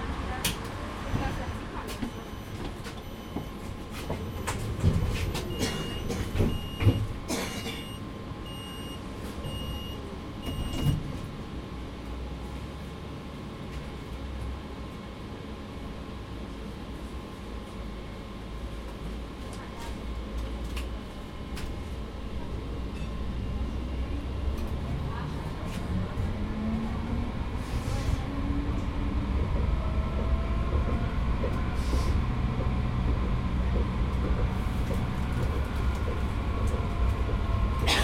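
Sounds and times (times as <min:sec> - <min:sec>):
tram: 0:00.0 - 0:38.0.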